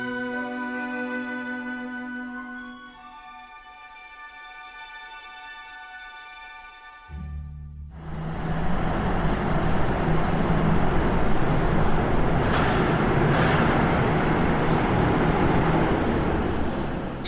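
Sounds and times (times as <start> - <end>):
bus driving away: 0.0 - 3.6, 7.1 - 17.2.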